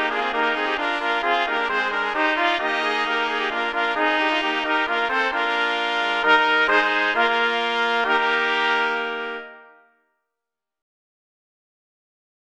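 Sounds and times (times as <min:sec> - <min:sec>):
intermediate trumpet quartet playing: 0:00.0 - 0:09.8.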